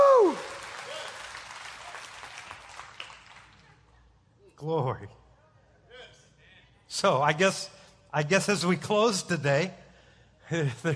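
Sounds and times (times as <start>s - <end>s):
audience hand clapping in praise: 0.0s - 3.8s
speech: 4.6s - 5.2s, 6.9s - 9.8s, 10.5s - 10.9s.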